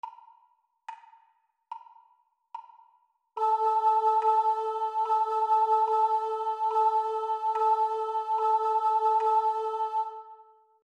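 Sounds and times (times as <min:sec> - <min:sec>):
high rhythm pattern: 0:03.4 - 0:10.3.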